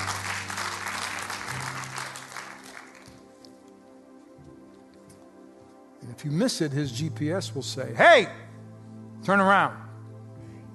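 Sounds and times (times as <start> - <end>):
audience clapping hands: 0.0 - 3.7
speech: 6.1 - 8.4, 9.3 - 9.8.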